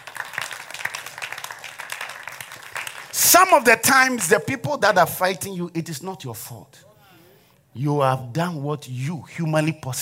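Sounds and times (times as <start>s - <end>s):
audience clapping hands: 0.0s - 4.2s
speech: 3.2s - 6.9s, 7.8s - 10.0s.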